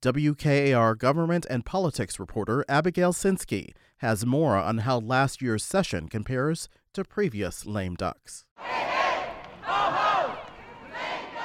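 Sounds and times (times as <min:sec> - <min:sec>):
speech: 0:00.0 - 0:08.8
protesters shouting in unison in state house rotunda: 0:08.6 - 0:11.4.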